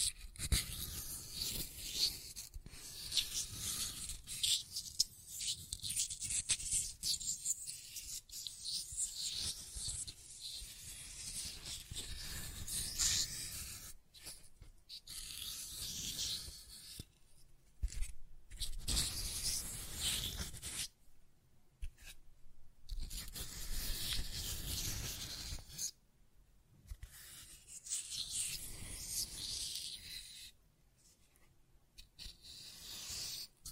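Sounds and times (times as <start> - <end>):
scratching and tracing on a surface: 0.0 - 17.2, 17.8 - 21.0, 21.8 - 22.2, 22.9 - 25.9, 26.9 - 33.6.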